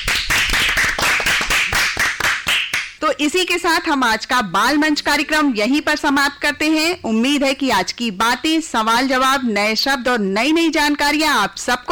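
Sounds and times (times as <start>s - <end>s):
audience clapping in unison at a children's quiz: 0.0s - 3.0s
speech: 3.2s - 11.9s.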